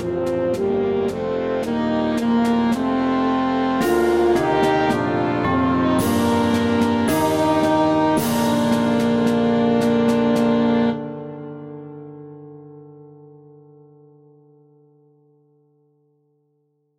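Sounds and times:
saxophone melody: 0:00.0 - 0:11.9.

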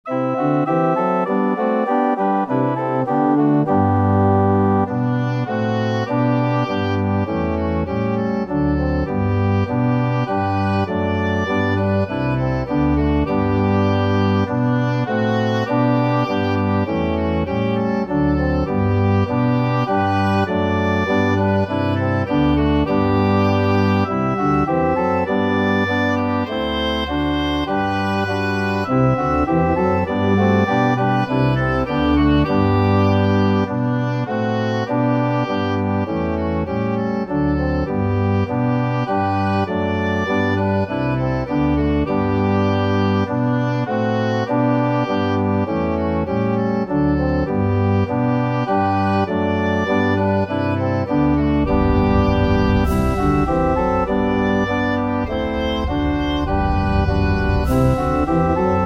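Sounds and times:
oboe melody: 0:00.1 - 0:58.8.

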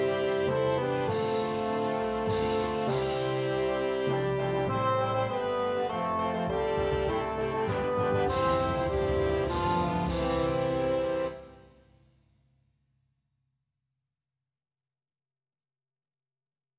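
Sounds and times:
tenoroon melody: 0:00.0 - 0:11.9.

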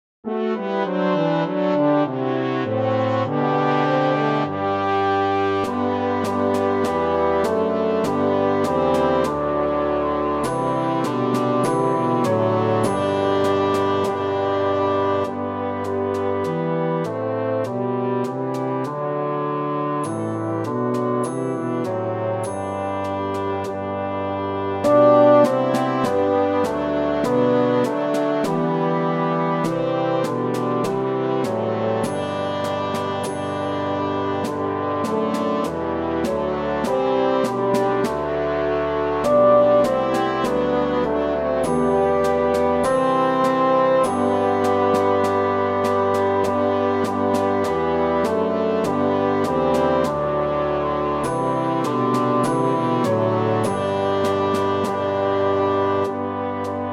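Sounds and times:
mini bassoon track with melody: 0:00.2 - 0:56.9.

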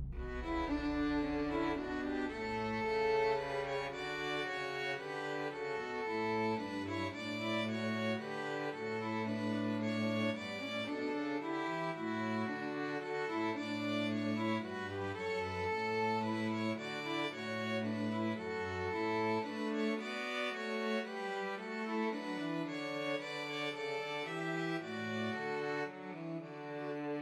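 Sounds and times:
Christmas trio for two violins and cello: 0:00.2 - 0:27.2.

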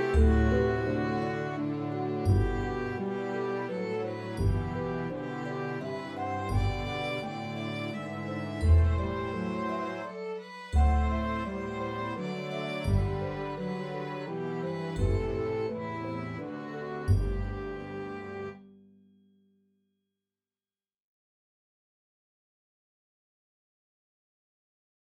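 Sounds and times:
violin melody: 0:00.0 - 0:18.8.

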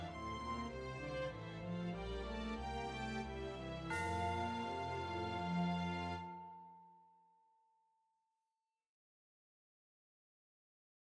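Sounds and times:
tenoroon melody: 0:00.0 - 0:06.6.

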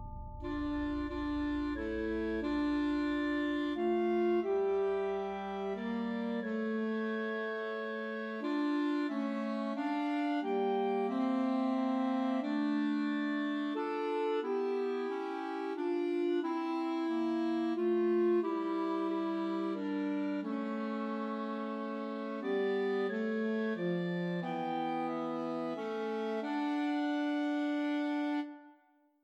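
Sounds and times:
Christmas trio for two clarinets and alto saxophone: 0:00.4 - 0:28.7.

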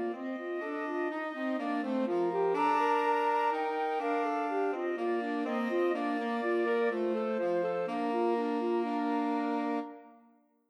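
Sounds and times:
alto saxophone playing a Christmas carol in a trio: 0:00.0 - 0:10.4
flute playing a Christmas carol in a trio: 0:00.0 - 0:10.4.

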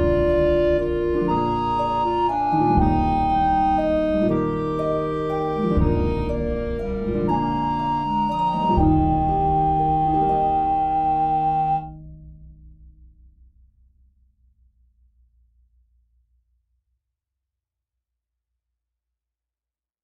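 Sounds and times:
clarinet melody: 0:00.0 - 0:12.0.

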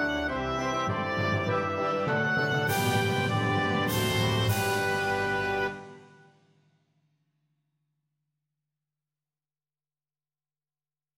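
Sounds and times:
oboe melody: 0:00.0 - 0:06.3.

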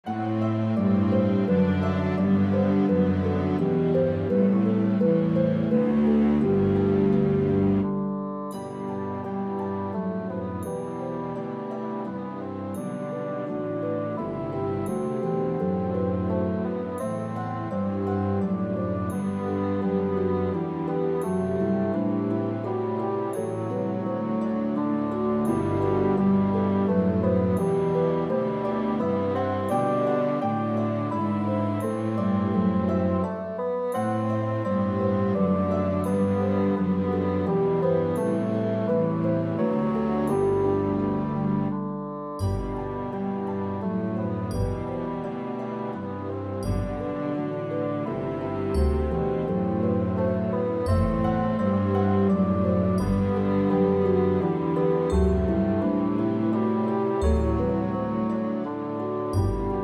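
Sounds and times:
mini bassoon track with melody: 0:00.0 - 0:59.8.

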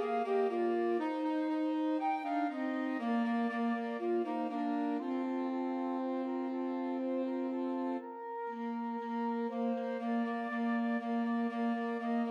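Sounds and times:
Christmas trio for flute alto saxophone and tenor saxophone: 0:00.0 - 0:12.3.

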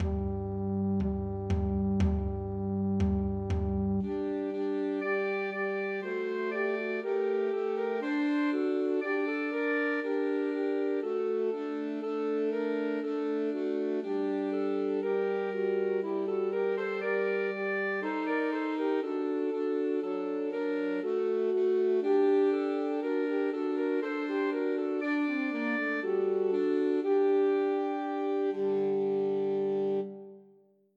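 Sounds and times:
Christmas music played by three alto saxophones: 0:00.0 - 0:30.4.

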